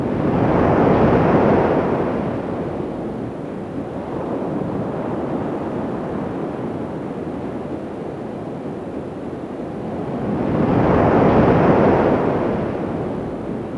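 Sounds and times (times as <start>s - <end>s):
ocean waves: 0.0s - 6.6s, 9.8s - 13.7s.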